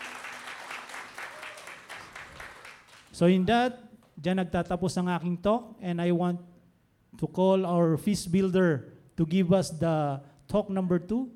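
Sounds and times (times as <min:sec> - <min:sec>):
faint audience applause at a faith gathering: 0:00.0 - 0:03.1
speech: 0:03.2 - 0:06.5, 0:07.1 - 0:11.3.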